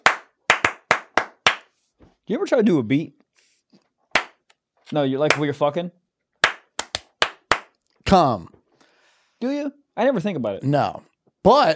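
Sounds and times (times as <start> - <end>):
hands clapping: 0.0 - 1.7, 4.1 - 4.6, 5.2 - 5.6, 6.4 - 7.8
speech: 2.3 - 3.2, 4.9 - 6.0, 8.1 - 8.6, 9.4 - 11.7.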